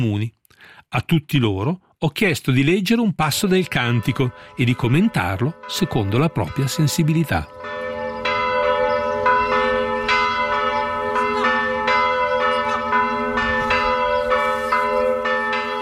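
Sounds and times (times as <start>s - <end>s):
speech: 0.0s - 7.9s
festive church bells pealing: 3.2s - 15.8s.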